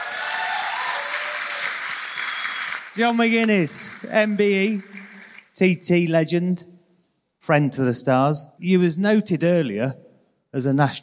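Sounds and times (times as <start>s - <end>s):
audience applause for John McGuinness at a stage event: 0.0s - 5.5s
speech: 3.0s - 5.0s, 5.6s - 6.7s, 7.5s - 11.0s.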